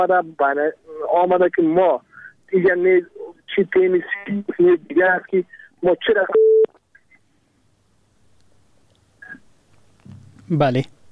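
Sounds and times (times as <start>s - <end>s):
speech: 0.0s - 6.6s, 10.5s - 11.0s
telephone line beep as a radio call-in listener's call drops: 6.3s - 6.7s.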